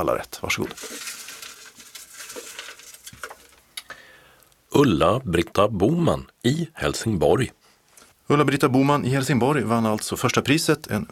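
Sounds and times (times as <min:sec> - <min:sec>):
speech: 0:00.0 - 0:01.1, 0:04.8 - 0:07.6, 0:08.3 - 0:11.1
hand rummaging paper slips inside a metal trophy cup: 0:00.4 - 0:03.6.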